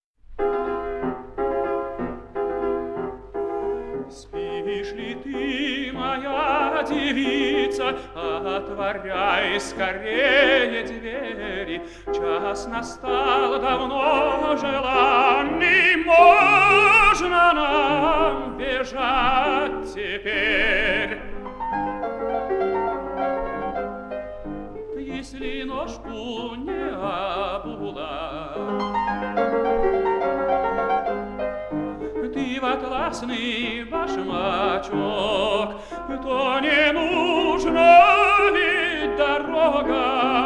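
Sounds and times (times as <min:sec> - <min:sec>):
Spanish song: 0:00.3 - 0:40.4.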